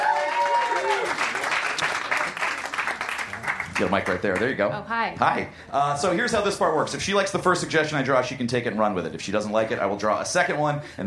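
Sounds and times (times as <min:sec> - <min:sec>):
brief rising-and-falling cheer: 0:00.0 - 0:01.4
audience applauding: 0:00.0 - 0:04.5
speech: 0:03.8 - 0:11.0.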